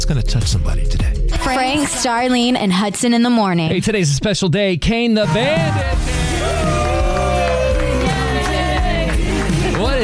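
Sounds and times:
speech: 0:00.0 - 0:06.2
studio audience on a morning show cheering and whooping: 0:05.3 - 0:09.8.

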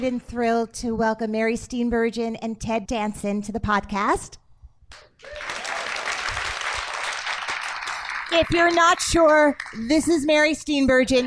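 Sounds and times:
speech: 0:00.0 - 0:05.6, 0:08.3 - 0:11.2
audience clapping: 0:04.9 - 0:10.2.

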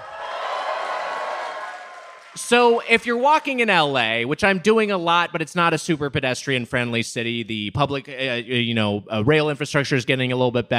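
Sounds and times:
audience applause: 0:00.0 - 0:03.0
speech: 0:02.4 - 0:10.7.

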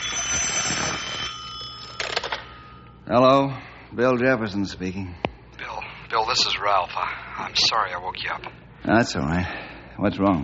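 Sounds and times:
telephone ringing with a rattling metallic bell: 0:00.0 - 0:03.0
speech: 0:03.1 - 0:05.3, 0:06.2 - 0:10.4.

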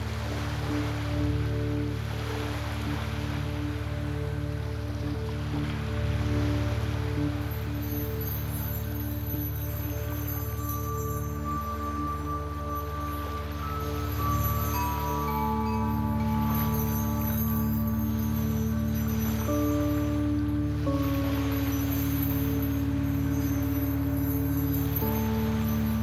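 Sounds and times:
soft chimes: 0:00.0 - 0:26.0
waves: 0:00.0 - 0:26.0
bright shimmer: 0:07.3 - 0:26.0.

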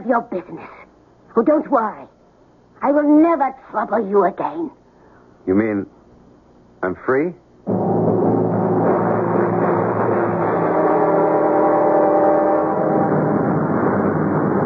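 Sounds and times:
speech: 0:00.1 - 0:00.8, 0:01.4 - 0:02.2, 0:02.8 - 0:04.8, 0:05.4 - 0:06.0, 0:06.8 - 0:07.9
airplane engine drone in cockpit: 0:07.7 - 0:14.6.

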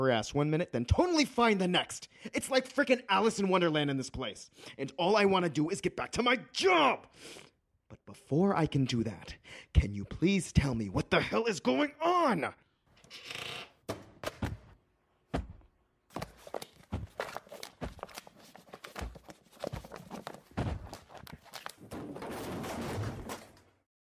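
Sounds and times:
speech: 0:00.0 - 0:07.5, 0:08.1 - 0:14.0
shelf being knocked over: 0:20.5 - 0:23.8.

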